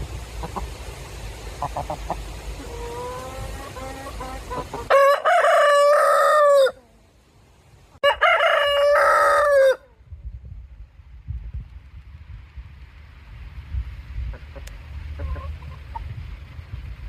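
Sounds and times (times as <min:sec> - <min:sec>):
rooster crowing: 0:04.8 - 0:06.9, 0:08.0 - 0:09.9.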